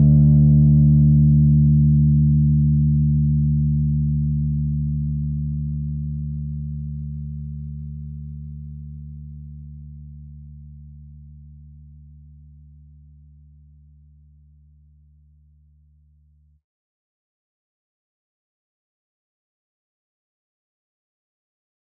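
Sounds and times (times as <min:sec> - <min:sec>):
MODO BASS bass: 0:00.0 - 0:16.7.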